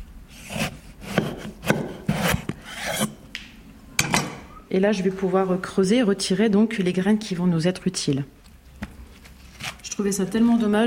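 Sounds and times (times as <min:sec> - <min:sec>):
knife cutting a melon: 0:00.4 - 0:03.2
speech: 0:04.7 - 0:08.4, 0:10.0 - 0:10.8.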